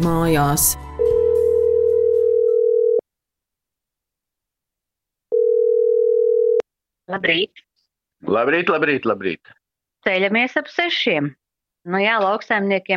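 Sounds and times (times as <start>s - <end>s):
speech: 0.0s - 0.8s, 7.1s - 7.6s, 8.2s - 12.9s
telephone ringback tone: 1.0s - 3.0s, 5.3s - 6.6s.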